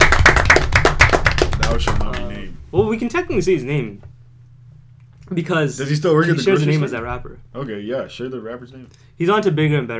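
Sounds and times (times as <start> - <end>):
audience applause: 0.0 - 2.2
speech: 1.8 - 2.0, 2.7 - 4.1, 5.3 - 9.9.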